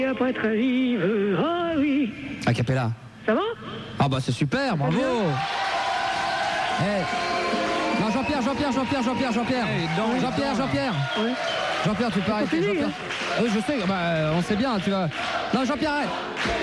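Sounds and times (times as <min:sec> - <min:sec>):
speech: 0:00.2 - 0:05.8, 0:06.8 - 0:16.6
live audience at a radio show cheering and shouting: 0:04.9 - 0:16.6.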